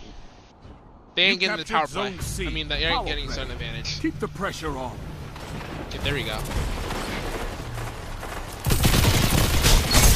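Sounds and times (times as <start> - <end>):
speech: 1.2 - 5.1, 5.9 - 6.8
rapid gunfire in Destiny 2 Crucible match: 8.6 - 10.0.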